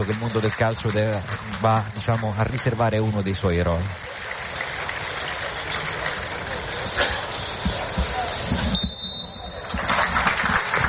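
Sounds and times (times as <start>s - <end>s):
speech: 0.0s - 4.3s
stadium crowd applauding: 0.0s - 10.8s
referee whistle: 7.5s - 9.8s.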